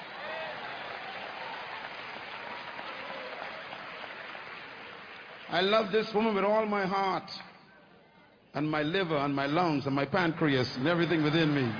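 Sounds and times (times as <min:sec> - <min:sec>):
audience clapping: 0:00.0 - 0:07.5, 0:10.4 - 0:11.7
speech: 0:05.5 - 0:07.5, 0:08.5 - 0:11.7.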